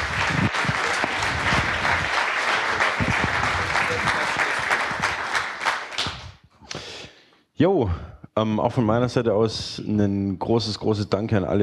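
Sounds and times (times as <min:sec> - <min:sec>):
audience applause: 0:00.0 - 0:06.3
speech: 0:07.6 - 0:11.6.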